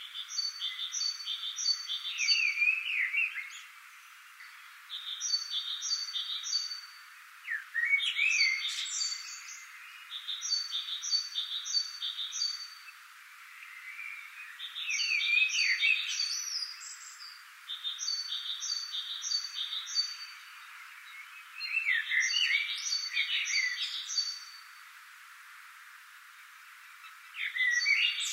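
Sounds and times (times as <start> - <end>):
common blackbird song: 0.0 - 3.7, 4.4 - 13.0, 13.6 - 24.7, 27.0 - 28.3.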